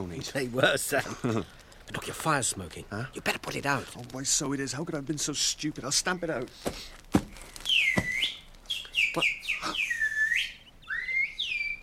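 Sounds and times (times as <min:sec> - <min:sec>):
speech: 0:00.1 - 0:07.0, 0:09.2 - 0:09.4
person whistling a birdlike call: 0:07.7 - 0:11.8.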